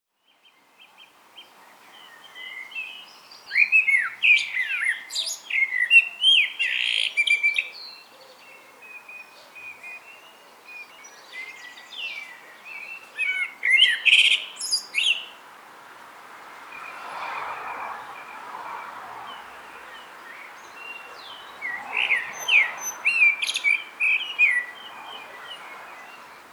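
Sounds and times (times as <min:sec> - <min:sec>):
Common blackbird singing: 0:01.4 - 0:15.4, 0:19.3 - 0:26.5.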